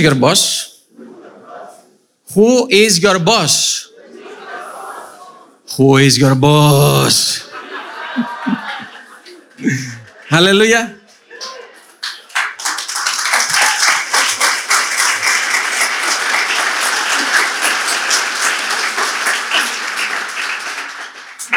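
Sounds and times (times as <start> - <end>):
speech: 0.0 - 0.7, 2.3 - 3.9, 5.7 - 7.4, 8.2 - 8.6, 9.6 - 11.6
laughter: 0.9 - 2.0, 3.9 - 5.7, 6.8 - 21.5
audience clapping: 7.9 - 21.5.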